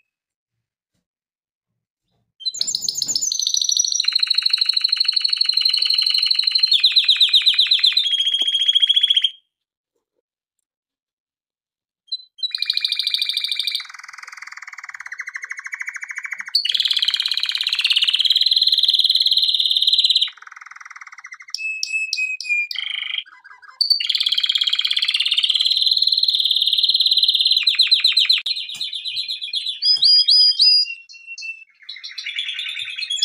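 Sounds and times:
canary trilling: 2.4s - 9.4s, 12.1s - 33.2s.

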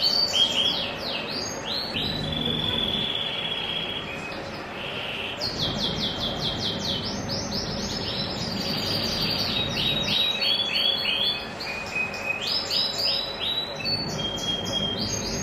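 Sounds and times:
green grass canary: 0.0s - 15.4s.

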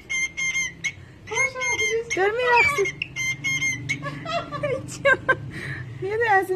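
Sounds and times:
cockatiel whistled calls: 0.0s - 4.2s
speech: 2.2s - 3.0s, 4.6s - 6.5s
laughter: 3.9s - 5.5s.

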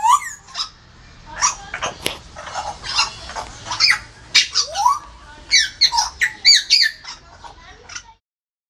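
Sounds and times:
grey parrot: 1.4s - 8.2s.

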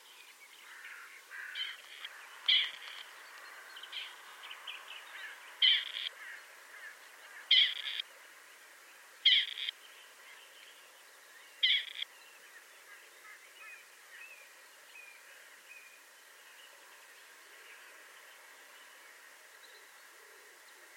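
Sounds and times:
background hiss: 0.0s - 20.9s
partridge rasping calls: 0.6s - 3.1s, 5.2s - 8.0s, 9.2s - 9.8s, 11.6s - 12.1s.

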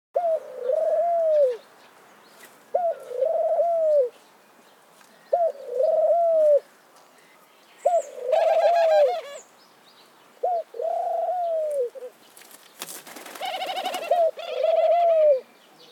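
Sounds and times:
dove cooing: 0.2s - 1.6s, 2.7s - 4.1s, 5.3s - 6.7s, 7.8s - 9.4s, 10.4s - 12.2s, 13.2s - 15.5s.

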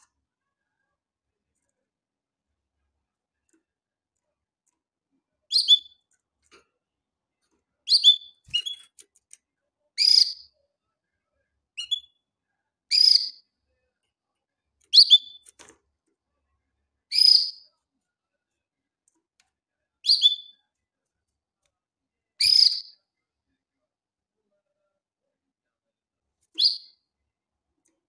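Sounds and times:
canary short sharp chirps: 5.4s - 6.2s, 7.8s - 9.4s, 10.0s - 10.7s, 11.7s - 13.6s, 14.8s - 15.7s, 17.0s - 17.8s, 20.0s - 20.7s, 22.4s - 23.2s, 26.4s - 27.2s.

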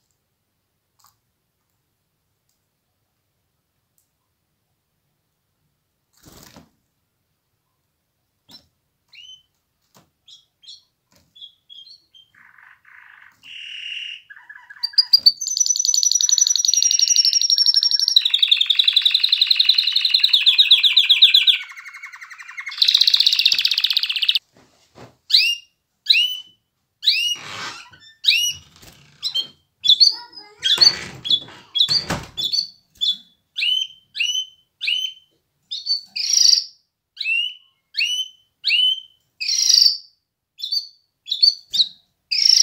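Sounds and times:
canary singing: 10.3s - 24.4s, 25.3s - 42.6s.

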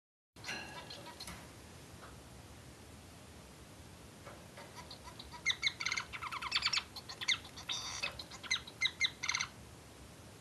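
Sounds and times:
society finch chattering: 0.4s - 1.4s, 4.6s - 9.5s.

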